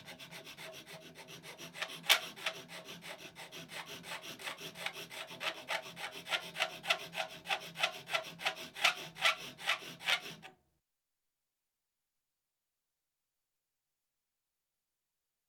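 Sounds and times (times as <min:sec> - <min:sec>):
file rasping on Formica with squealing: 0:00.0 - 0:10.5.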